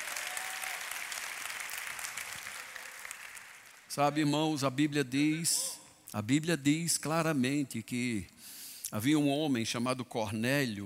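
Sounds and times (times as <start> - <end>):
audience applause: 0.0 - 3.9
speech: 3.9 - 10.8.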